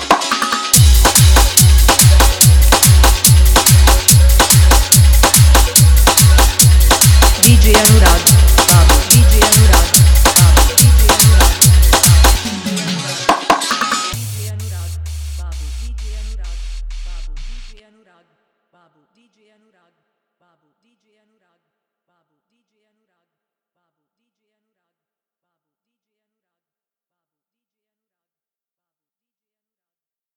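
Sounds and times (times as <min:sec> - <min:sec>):
bass dance mix: 0:00.8 - 0:17.8.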